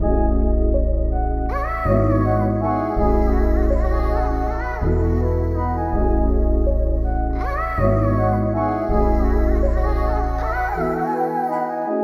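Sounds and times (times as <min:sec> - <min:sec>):
RnB music in C sharp minor: 0:00.0 - 0:11.9.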